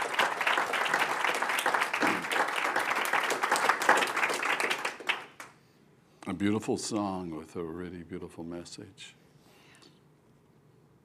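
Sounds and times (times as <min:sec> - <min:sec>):
clapping: 0:00.0 - 0:05.6
speech: 0:06.4 - 0:09.2.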